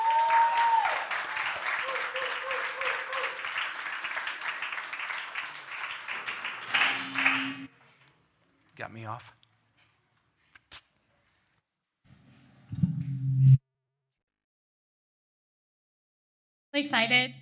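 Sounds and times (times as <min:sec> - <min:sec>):
audience clapping welcoming a speaker: 0:00.0 - 0:07.7
people cheering: 0:00.0 - 0:07.7
speech: 0:08.8 - 0:09.4, 0:16.8 - 0:17.3.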